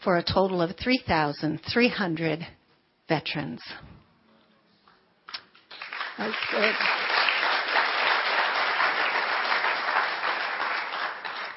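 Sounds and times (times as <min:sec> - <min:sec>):
speech: 0:00.0 - 0:03.9, 0:06.2 - 0:07.0
audience applause: 0:05.7 - 0:11.5.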